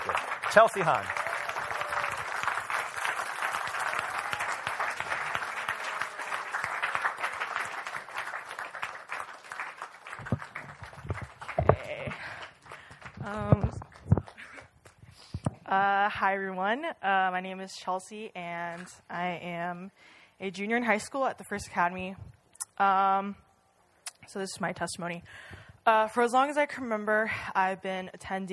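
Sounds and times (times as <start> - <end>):
crowd applauding welcoming a speaker: 0.0 - 14.5
speech: 0.5 - 1.2, 16.2 - 23.4, 24.3 - 28.5.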